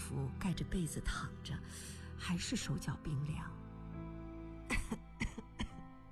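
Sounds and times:
speech: 0.1 - 3.6
person coughing: 4.7 - 5.8.

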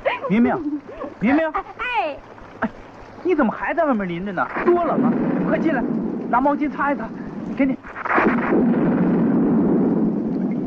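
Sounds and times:
speech: 0.3 - 1.9, 2.6 - 8.6
loud thunder clap: 4.5 - 10.6.

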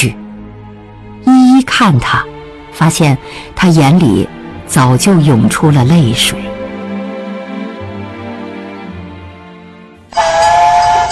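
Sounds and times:
speech: 0.0 - 0.2, 1.2 - 6.5
steam train whistle as train departs: 10.1 - 11.1.

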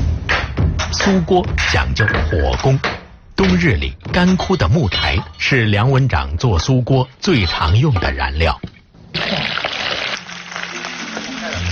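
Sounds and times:
speech: 1.0 - 9.6
fish and tofu deep-frying in oil: 9.2 - 11.6.

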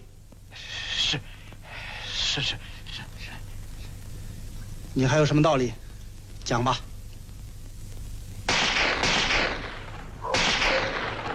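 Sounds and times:
speech: 1.1 - 1.3, 2.4 - 2.7, 5.0 - 5.8, 6.5 - 6.9
gunshots: 8.5 - 11.3.

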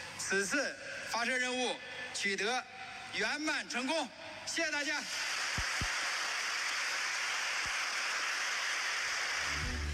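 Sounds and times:
speech: 0.3 - 5.3
applause from a large crowd at a rocket launch site: 5.1 - 9.9.

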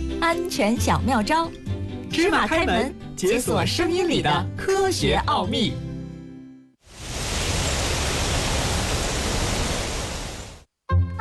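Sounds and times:
music: 0.0 - 6.8, 10.8 - 11.1
speech: 0.2 - 1.6, 2.2 - 5.8
crisp autumn wind blowing: 6.9 - 10.7.

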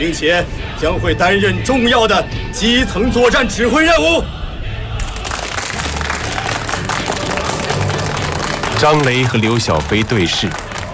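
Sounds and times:
speech: 0.0 - 4.4, 8.8 - 10.6
people clapping: 5.0 - 10.9.

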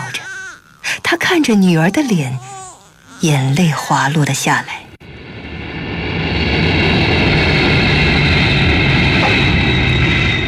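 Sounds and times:
speech: 1.2 - 2.5, 3.2 - 4.8
Boeing airliner's jet engines roaring as it lands at an airport: 5.0 - 10.4.

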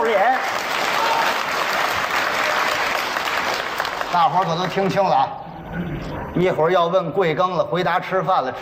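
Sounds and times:
audience applause: 0.0 - 5.0
speech: 4.2 - 8.6.

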